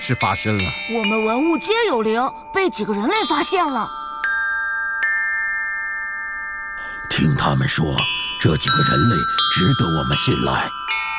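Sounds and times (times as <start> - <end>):
ancient bronze chime bells ringing: 0.0 - 11.1
speech: 0.1 - 4.0, 7.2 - 11.0.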